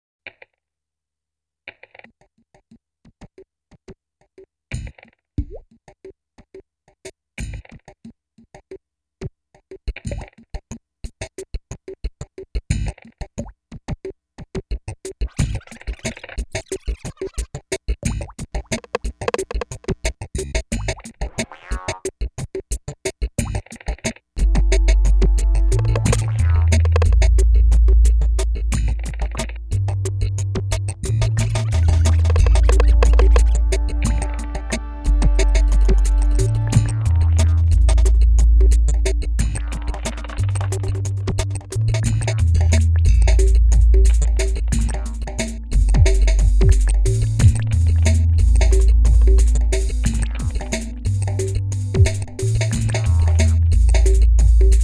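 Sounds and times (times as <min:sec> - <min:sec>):
bass: 0:07.4 - 0:07.8, 0:12.7 - 0:13.9, 0:15.2 - 0:22.0, 0:23.3 - 0:54.8.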